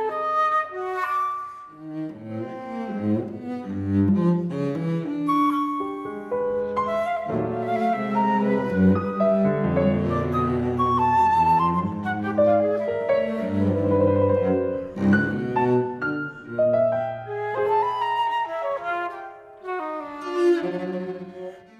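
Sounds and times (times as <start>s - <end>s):
flute: 0.0s - 2.0s, 5.1s - 15.8s, 16.6s - 21.2s
cello: 0.0s - 21.7s
piano: 0.0s - 21.7s.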